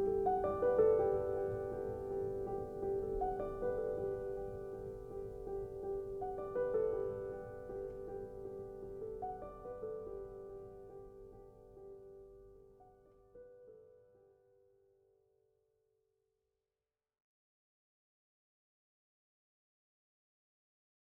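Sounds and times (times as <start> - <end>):
solo piano: 0.0 - 15.2.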